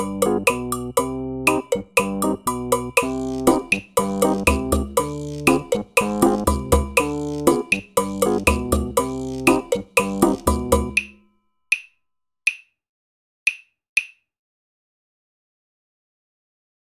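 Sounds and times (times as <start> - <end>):
Cuban percussion: 0.0 - 11.9.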